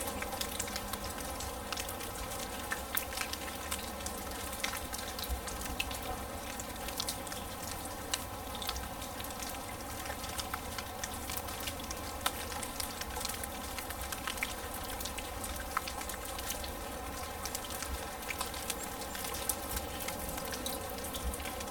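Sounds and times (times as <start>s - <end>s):
smooth rain on grass: 0.0s - 21.6s.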